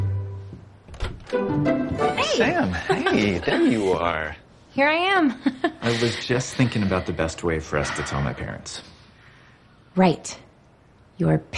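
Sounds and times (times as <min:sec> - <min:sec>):
door opening: 0:00.8 - 0:01.4
speech: 0:02.4 - 0:08.9, 0:10.0 - 0:10.5, 0:11.2 - 0:11.5
laughter: 0:02.7 - 0:04.0, 0:05.3 - 0:07.5.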